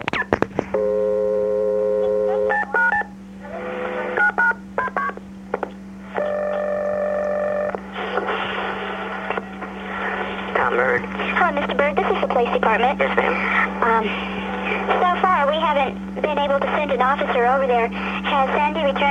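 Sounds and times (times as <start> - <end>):
faint line noise: 0.0 - 19.0
steady low electrical hum: 0.0 - 19.0
phone number dialed with touch-tone beeps: 2.0 - 3.1, 4.2 - 5.2
speech: 12.7 - 14.9, 15.5 - 19.0.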